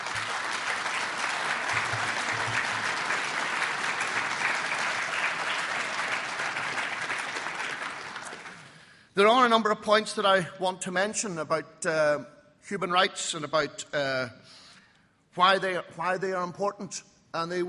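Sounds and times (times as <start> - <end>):
round of applause: 0.0 - 8.9
speech: 9.2 - 14.6, 15.4 - 17.6.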